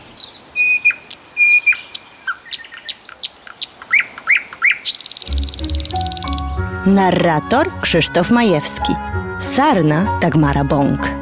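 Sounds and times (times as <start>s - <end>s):
birdsong chorus from several birds: 0.0s - 5.3s
steady low-pitched sound: 5.3s - 8.4s
speech: 6.8s - 11.1s.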